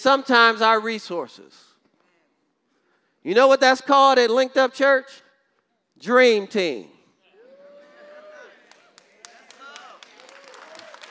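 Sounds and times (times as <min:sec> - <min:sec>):
speech: 0:00.0 - 0:01.7, 0:03.2 - 0:05.2, 0:06.0 - 0:07.0
audience clapping hands: 0:08.4 - 0:11.1.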